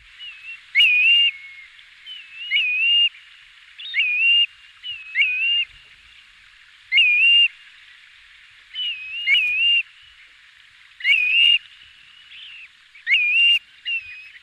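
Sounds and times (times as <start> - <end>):
fluting bird call at dusk: 0.2 - 3.1, 3.8 - 5.7, 6.9 - 7.6, 8.7 - 9.9, 11.0 - 14.4.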